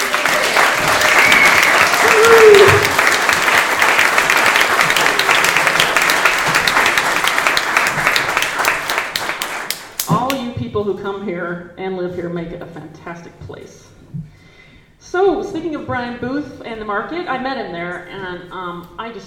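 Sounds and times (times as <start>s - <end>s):
cheer or whoop: 0.0s - 3.2s
crowd applause: 0.0s - 10.0s
speech: 11.0s - 14.3s, 15.0s - 19.2s.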